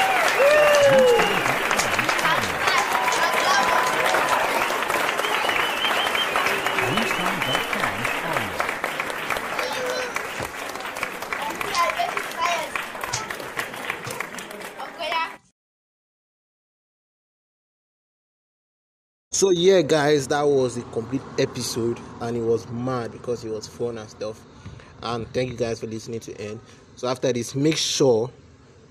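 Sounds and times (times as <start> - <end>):
audience applause: 0.0 - 15.4
laughter: 18.8 - 26.6
speech: 19.4 - 28.4.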